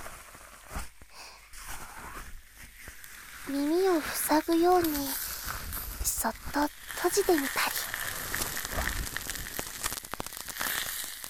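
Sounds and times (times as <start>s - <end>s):
speech: 3.5s - 5.2s, 6.2s - 7.8s
carbonated drink fizzing: 6.6s - 11.2s.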